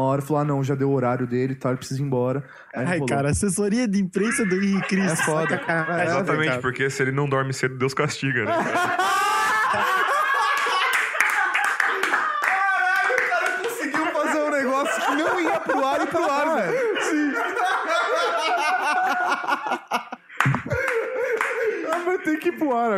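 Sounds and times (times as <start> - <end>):
speech: 0.0 - 10.1, 22.3 - 22.9
laughter: 4.2 - 6.7, 8.4 - 22.9
digital applause sound effect: 10.6 - 14.2.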